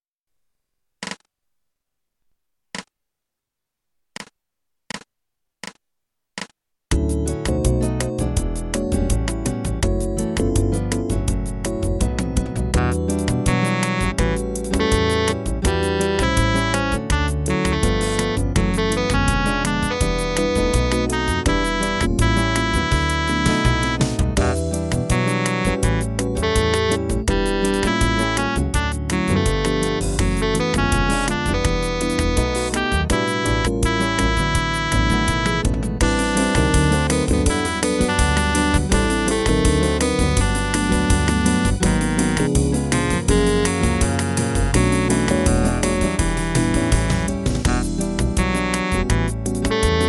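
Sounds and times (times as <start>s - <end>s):
jazz music: 6.9s - 50.0s.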